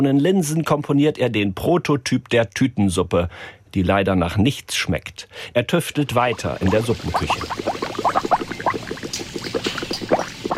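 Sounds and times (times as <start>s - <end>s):
speech: 0.0s - 8.1s
seasoning liquid bubbling in large kettles: 6.0s - 10.5s.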